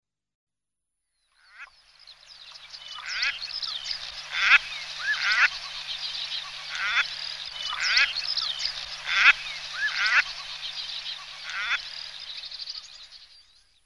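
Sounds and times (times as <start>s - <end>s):
common shelduck calling: 2.7s - 13.1s.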